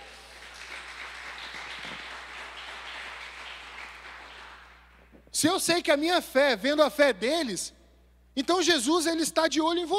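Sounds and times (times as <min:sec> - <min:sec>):
audience applause: 0:00.0 - 0:05.0
speech: 0:05.4 - 0:07.8, 0:08.4 - 0:09.9.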